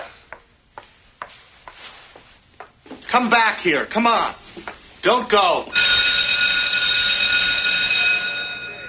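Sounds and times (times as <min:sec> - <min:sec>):
speech: 0:03.2 - 0:05.8
loud electric bell ringing: 0:05.7 - 0:08.8.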